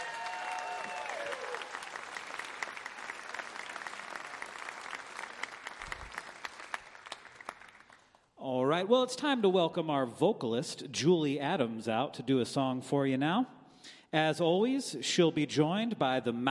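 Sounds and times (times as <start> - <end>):
audience applause after a live music performance: 0.0 - 8.1
speech: 8.8 - 16.5.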